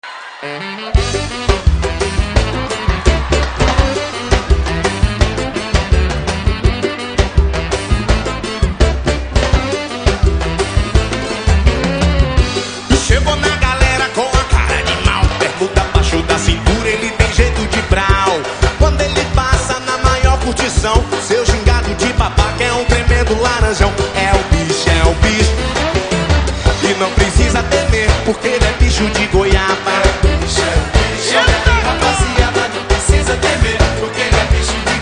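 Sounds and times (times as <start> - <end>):
samba music: 0.0 - 35.0.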